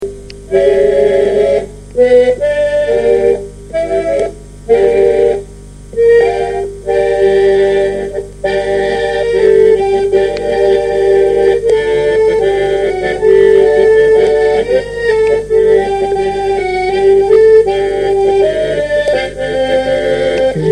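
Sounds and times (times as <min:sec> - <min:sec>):
song: 0:00.5 - 0:20.7.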